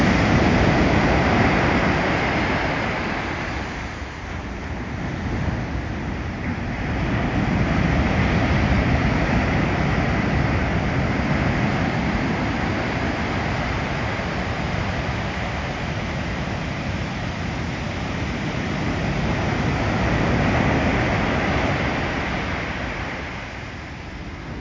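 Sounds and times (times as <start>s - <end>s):
ocean surf at Sharp Park: 0.0s - 24.5s.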